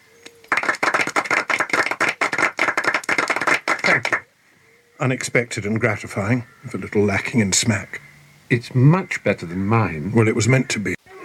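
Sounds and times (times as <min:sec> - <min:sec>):
audience clapping: 0:00.4 - 0:04.2
speech: 0:05.0 - 0:11.2.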